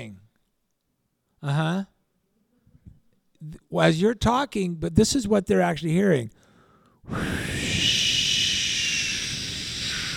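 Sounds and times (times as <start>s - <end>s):
speech: 1.4s - 1.9s, 3.4s - 6.4s, 7.1s - 7.5s
white noise: 7.1s - 10.1s.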